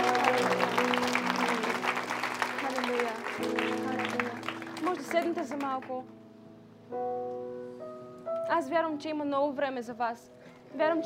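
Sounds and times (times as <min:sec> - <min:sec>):
audience applause: 0:00.0 - 0:05.9
speech: 0:05.3 - 0:06.2, 0:06.9 - 0:07.3, 0:08.5 - 0:11.0.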